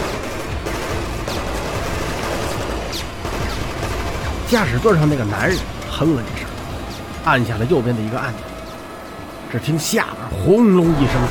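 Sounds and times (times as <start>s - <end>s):
machine gun firing: 0.0s - 7.2s
speech: 4.5s - 6.4s, 7.2s - 8.5s, 9.5s - 11.2s.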